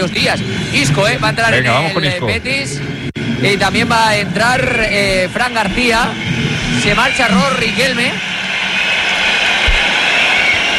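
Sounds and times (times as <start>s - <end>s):
speech: 0.0s - 8.3s
football stadium crowd whistling: 6.0s - 10.7s
football stadium crowd applauding during a player substitution: 8.3s - 10.7s.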